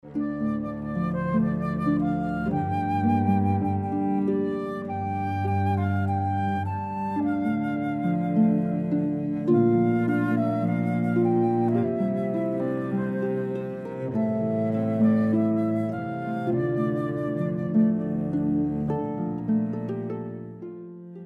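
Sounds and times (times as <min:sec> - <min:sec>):
cello: 0:00.0 - 0:21.2
flute: 0:00.0 - 0:21.2
harp: 0:00.0 - 0:21.2.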